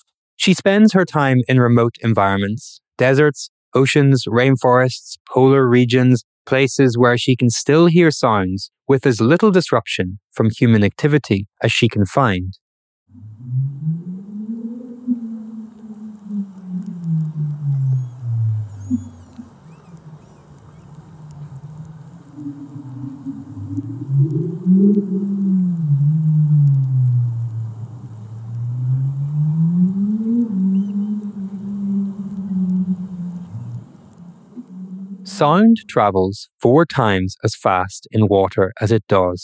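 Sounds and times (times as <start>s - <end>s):
speech: 0.4s - 13.7s, 35.4s - 39.4s
underwater whale song: 13.1s - 35.9s.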